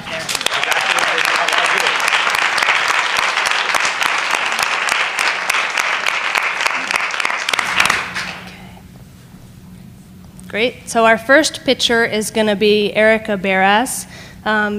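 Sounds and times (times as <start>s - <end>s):
crowd applause: 0.0s - 8.5s
speech: 10.5s - 14.7s.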